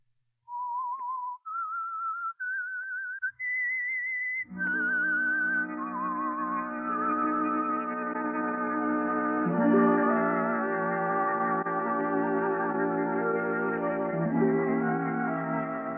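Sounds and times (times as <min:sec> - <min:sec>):
whistled theme tune: 0:00.5 - 0:15.9
full orchestra: 0:04.6 - 0:15.9.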